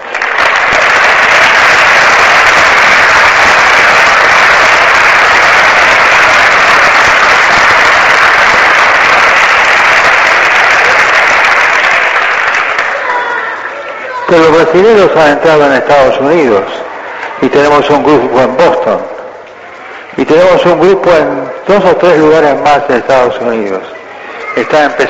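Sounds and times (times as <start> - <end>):
audience applause: 0.0 - 18.2
speech: 14.3 - 16.8, 17.5 - 19.1, 20.2 - 23.9, 24.6 - 25.0.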